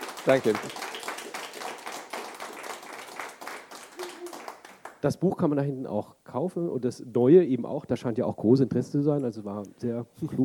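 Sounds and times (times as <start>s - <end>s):
audience applause: 0.0s - 5.0s
speech: 0.2s - 1.0s, 5.0s - 10.4s.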